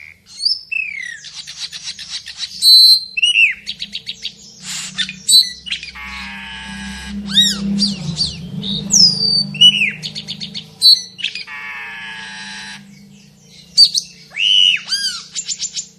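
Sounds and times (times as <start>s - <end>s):
Asian glossy starling singing a varied mimicking medley: 0.0s - 15.9s.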